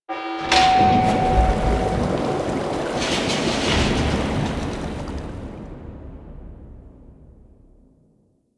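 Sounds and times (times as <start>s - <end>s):
forest water drain: 0.5s - 5.7s.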